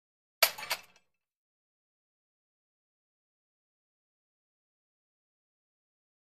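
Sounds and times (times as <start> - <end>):
gym weight equipment: 0.4 - 1.1.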